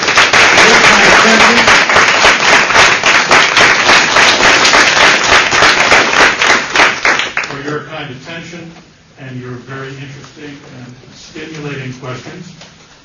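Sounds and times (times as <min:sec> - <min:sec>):
audience applause: 0:00.0 - 0:07.6
speech: 0:10.4 - 0:12.7.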